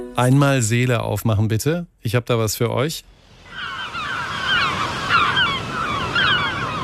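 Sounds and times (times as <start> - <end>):
speech: 0.2 - 3.2
seabird cries on the North Sea coast: 3.4 - 6.8.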